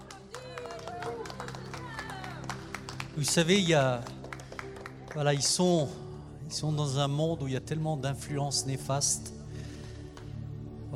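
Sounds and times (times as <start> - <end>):
church congregation clapping for children: 0.0 - 5.9
speech: 3.2 - 4.2, 5.2 - 9.4.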